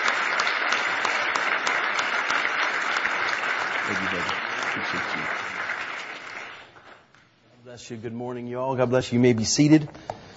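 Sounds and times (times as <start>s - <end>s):
audience applause: 0.0s - 7.1s
speech: 3.9s - 5.6s, 7.6s - 10.1s.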